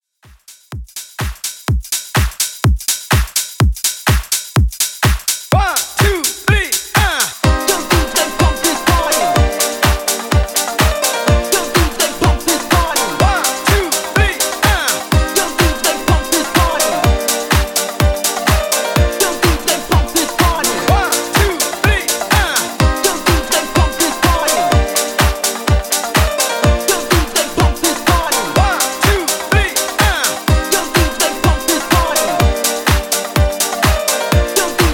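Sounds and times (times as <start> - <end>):
party classic music mix at 125 BPM: 0.2 - 34.9.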